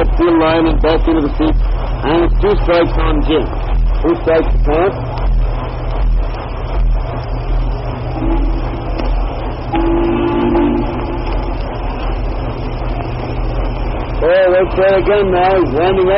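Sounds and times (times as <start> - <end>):
constant hum: 0.0 - 16.1
heavy crackling noise: 0.0 - 16.1
speech: 0.2 - 5.2, 14.2 - 16.1
low whistle blasts during a 1936 Boston Red Sox at Chicago White Sox baseball game: 8.0 - 12.0.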